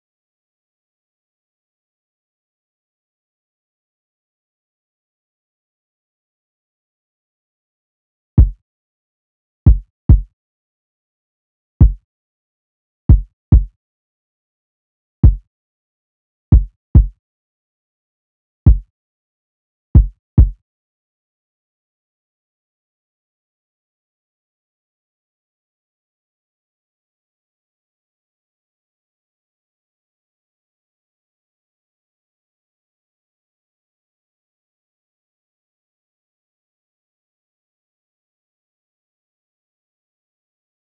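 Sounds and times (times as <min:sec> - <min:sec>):
kick drum: 0:08.4 - 0:08.6, 0:09.7 - 0:10.3, 0:11.8 - 0:12.0, 0:13.1 - 0:13.8, 0:15.2 - 0:15.5, 0:16.6 - 0:17.2, 0:18.7 - 0:18.9, 0:20.0 - 0:20.6.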